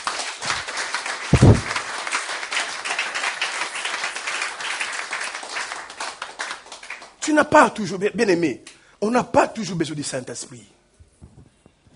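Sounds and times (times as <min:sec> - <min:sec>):
congregation applauding during a church service: 0:00.0 - 0:07.9
loud thump: 0:01.4 - 0:01.8
speech: 0:07.3 - 0:10.8.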